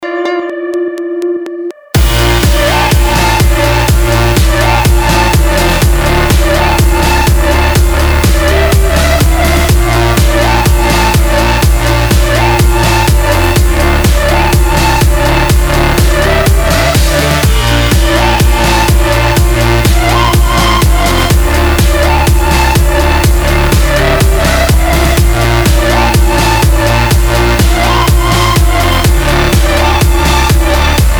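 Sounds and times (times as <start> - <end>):
space house music: 0.0 - 31.1.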